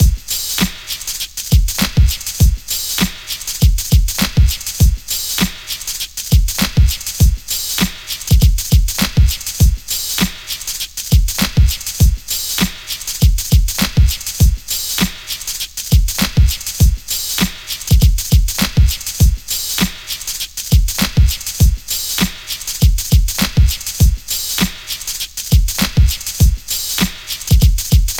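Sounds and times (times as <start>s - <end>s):
perky stereo splash breakbeat: 0.0s - 28.1s.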